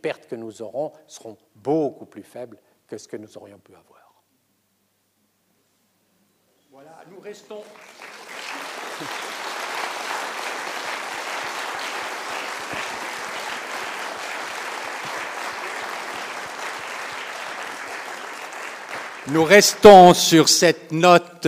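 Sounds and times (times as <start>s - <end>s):
speech: 0.0s - 4.0s, 6.8s - 8.1s, 9.0s - 9.3s, 19.3s - 21.4s
audience applause: 7.5s - 20.1s
laughter: 8.5s - 10.5s, 11.3s - 16.4s.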